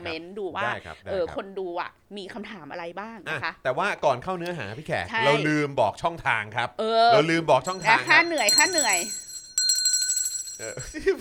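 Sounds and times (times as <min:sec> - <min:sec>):
speech: 0:00.0 - 0:09.3, 0:10.6 - 0:11.1
hand bell being shaken rapidly: 0:07.6 - 0:11.0.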